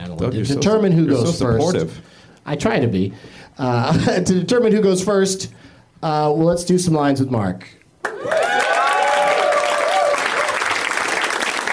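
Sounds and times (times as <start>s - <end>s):
speech: 0.2s - 8.4s
studio audience applause: 8.0s - 11.7s.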